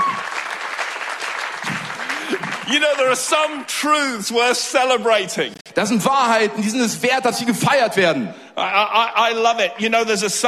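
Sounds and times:
audience clapping: 0.0 - 3.6
speech: 2.7 - 10.4.

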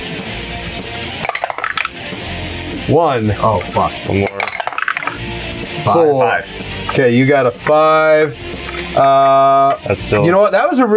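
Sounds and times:
dice being rolled: 0.4 - 2.0, 4.2 - 5.2
speech: 2.9 - 4.4, 5.8 - 10.9.

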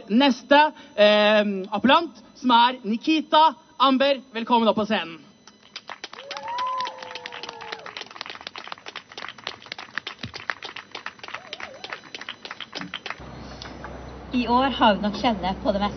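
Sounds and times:
speech: 0.1 - 5.3, 14.4 - 15.9
crowd applause for the next speaker on stage: 5.8 - 13.8.

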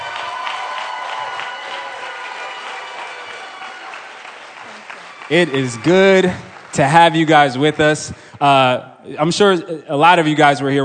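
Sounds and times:
audience clapping to welcome two pastors: 0.0 - 8.3
crowd noise: 0.0 - 10.8
speech: 5.3 - 10.8.

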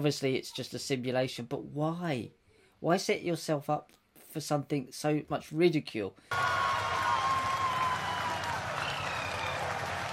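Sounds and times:
speech: 0.0 - 6.9
audience applause: 6.3 - 10.1.

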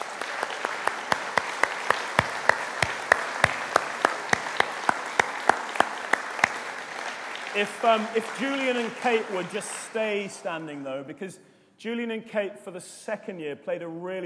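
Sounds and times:
applause: 0.0 - 11.1
speech: 7.6 - 14.2.

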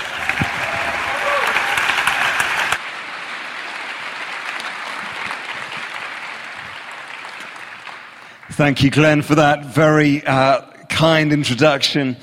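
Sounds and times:
audience clapping welcoming a speaker: 0.0 - 9.4
speech: 8.6 - 12.2.

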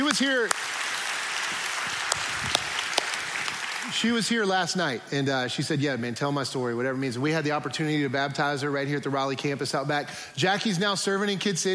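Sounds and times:
audience applause: 0.0 - 4.1
speech: 0.2 - 0.7, 3.9 - 11.7.

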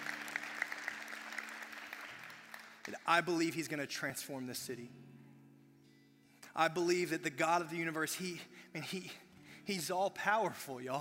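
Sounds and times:
audience clapping: 0.0 - 3.6
speech: 2.9 - 5.1, 6.6 - 10.9.

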